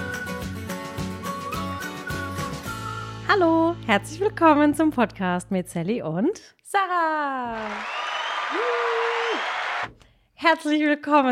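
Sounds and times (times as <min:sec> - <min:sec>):
speech: 0:03.3 - 0:08.8, 0:10.4 - 0:11.3
applause: 0:07.5 - 0:10.0.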